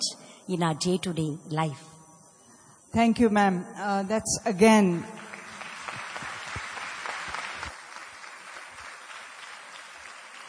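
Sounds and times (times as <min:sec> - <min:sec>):
speech: 0:00.5 - 0:01.9, 0:02.9 - 0:05.2
audience clapping: 0:05.2 - 0:10.4.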